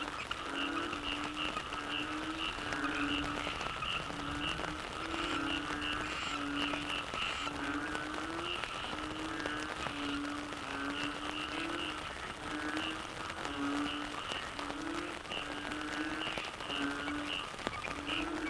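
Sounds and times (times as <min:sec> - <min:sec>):
Yamaha frogs in Cherating wetlands seaside village: 0:00.0 - 0:18.4.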